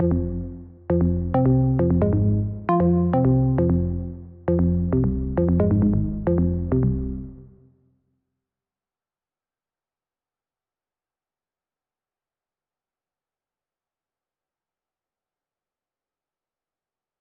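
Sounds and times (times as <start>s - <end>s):
melody loop at 134 BPM in F: 0.0s - 7.4s.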